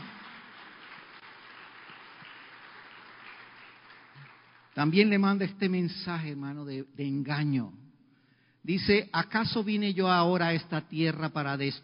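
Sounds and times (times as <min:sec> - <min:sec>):
audience applause: 0:00.0 - 0:04.9
speech: 0:04.8 - 0:07.8, 0:08.6 - 0:11.8.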